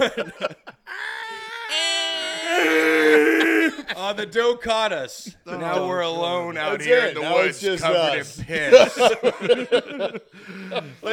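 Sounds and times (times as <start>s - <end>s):
speech: 0.0s - 0.6s, 4.1s - 11.1s
laughter: 0.0s - 1.1s, 5.2s - 11.1s
person imitating a scream: 0.9s - 3.9s.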